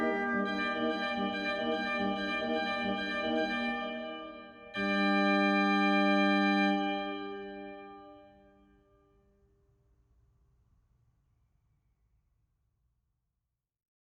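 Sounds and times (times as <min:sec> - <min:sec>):
organist playing a tarantella: 0:00.0 - 0:08.0.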